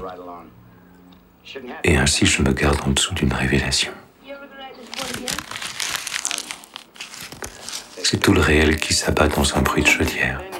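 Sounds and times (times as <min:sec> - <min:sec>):
speech: 0:00.0 - 0:00.7, 0:01.4 - 0:05.6, 0:08.0 - 0:10.5
envelope being torn open: 0:04.8 - 0:09.0.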